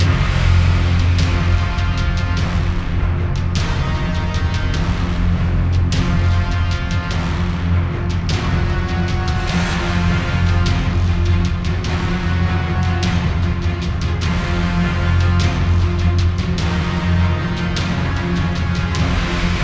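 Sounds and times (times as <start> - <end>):
battle music: 0.0 - 19.6.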